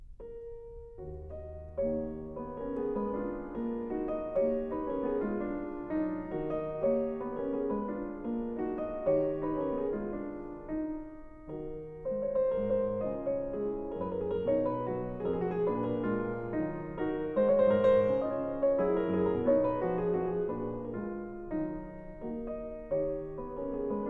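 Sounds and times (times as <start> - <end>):
piano mazurka in E flat minor: 0.0 - 24.0.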